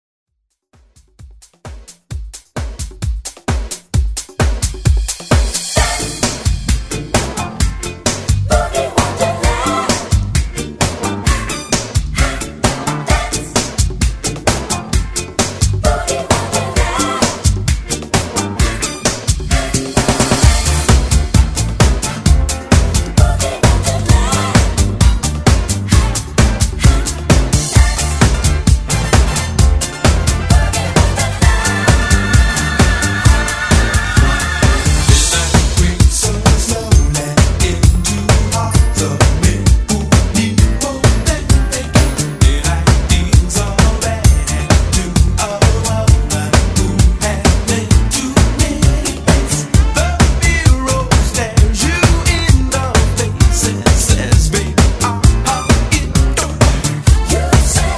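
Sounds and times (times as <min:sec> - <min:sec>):
70s disco funk music: 0:00.8 - 0:57.9.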